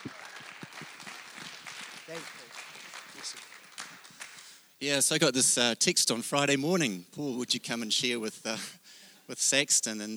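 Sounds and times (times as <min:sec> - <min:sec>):
audience applause welcoming a speaker: 0:00.0 - 0:04.8
speech: 0:02.1 - 0:02.4, 0:04.8 - 0:10.1.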